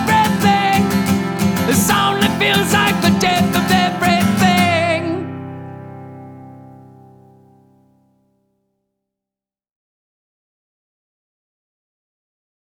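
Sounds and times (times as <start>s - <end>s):
song: 0.0s - 6.8s.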